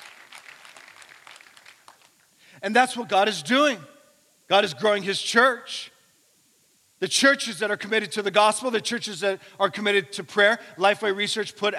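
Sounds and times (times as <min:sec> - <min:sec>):
church congregation clapping: 0:00.0 - 0:02.3
speech: 0:02.6 - 0:03.9, 0:04.5 - 0:05.9, 0:07.0 - 0:11.7.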